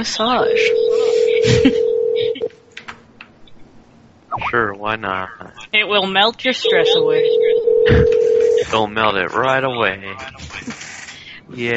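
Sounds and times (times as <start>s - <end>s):
speech: 0.0s - 1.9s, 4.4s - 10.7s, 11.5s - 11.7s
telephone electronic ring tone: 0.3s - 2.5s, 6.6s - 8.8s.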